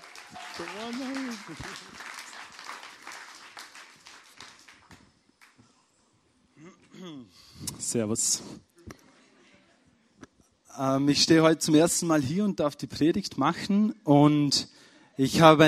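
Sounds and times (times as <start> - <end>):
audience applause: 0.0 - 5.6
speech: 0.3 - 2.1, 7.3 - 8.7, 10.8 - 15.6.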